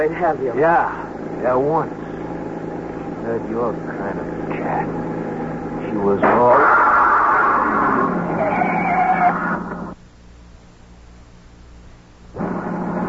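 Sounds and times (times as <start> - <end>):
speech: 0.0 - 2.0, 3.2 - 5.3, 5.9 - 6.9
car front tire blowout: 6.2 - 9.8.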